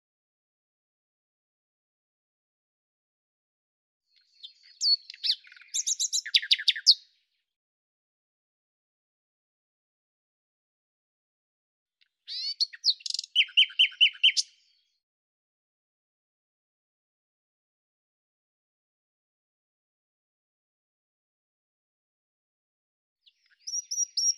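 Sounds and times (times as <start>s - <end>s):
common nightingale singing: 4.1s - 7.1s, 12.3s - 14.8s, 23.2s - 24.3s.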